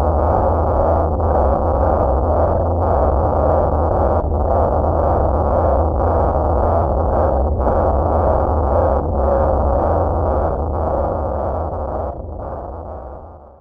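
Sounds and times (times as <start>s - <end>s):
dark distorted drone pulse rumble: 0.0s - 13.5s.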